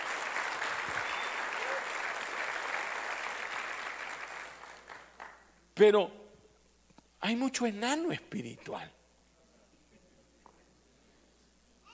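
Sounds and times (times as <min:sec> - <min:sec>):
audience applause: 0:00.0 - 0:05.4
speech: 0:05.8 - 0:06.2, 0:07.2 - 0:09.0.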